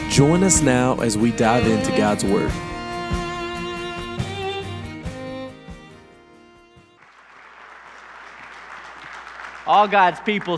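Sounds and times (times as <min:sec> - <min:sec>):
speech: 0:00.1 - 0:02.7, 0:09.7 - 0:10.5
audience clapping: 0:07.0 - 0:10.5.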